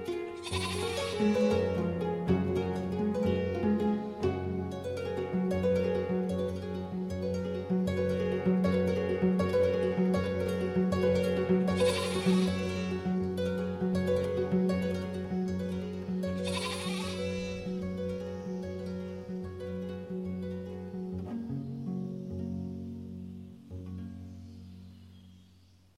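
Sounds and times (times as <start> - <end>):
kora playing in Senegal: 0.0 - 25.0
lambs bleating in Senegal: 0.4 - 1.7, 11.8 - 13.0, 16.4 - 17.7.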